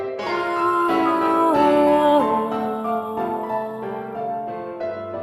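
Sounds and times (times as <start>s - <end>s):
polka vocals only: 0.2s - 5.1s.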